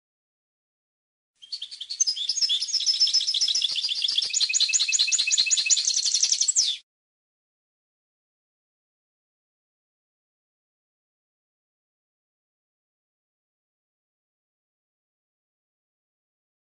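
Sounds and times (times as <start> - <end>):
European goldfinch song of tinkling twitter: 1.4 - 6.8.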